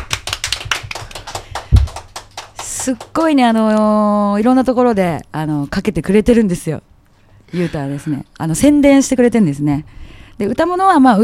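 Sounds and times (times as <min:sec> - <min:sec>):
staff clapping: 0:00.0 - 0:03.8
speech: 0:02.8 - 0:06.9, 0:07.5 - 0:11.2.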